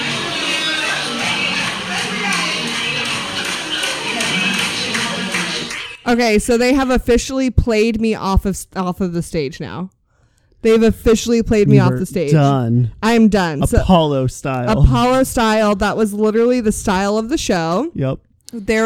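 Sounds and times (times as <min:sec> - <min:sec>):
audience clapping: 0:00.2 - 0:06.0
speech: 0:06.1 - 0:09.9, 0:10.6 - 0:18.8.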